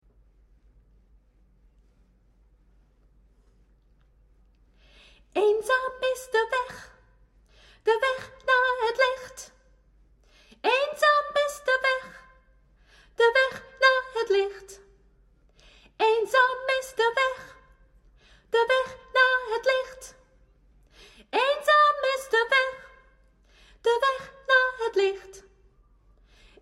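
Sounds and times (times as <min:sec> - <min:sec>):
background soprano voice: 0:05.3 - 0:07.1, 0:07.8 - 0:09.6, 0:10.6 - 0:12.4, 0:13.2 - 0:14.9, 0:16.0 - 0:17.7, 0:18.5 - 0:20.2, 0:21.2 - 0:23.0, 0:23.8 - 0:25.6.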